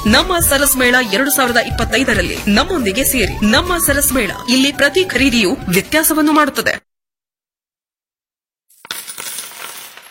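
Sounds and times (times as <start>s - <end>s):
speech: 0.0s - 6.8s
coins dropping: 8.7s - 10.0s.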